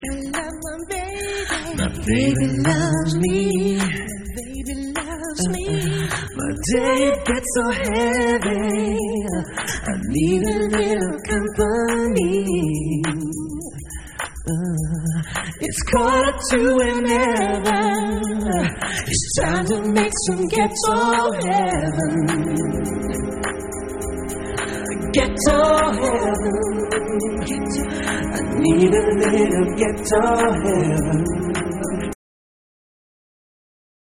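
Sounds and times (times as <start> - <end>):
a cappella singing: 0.0 - 23.6, 24.6 - 32.2.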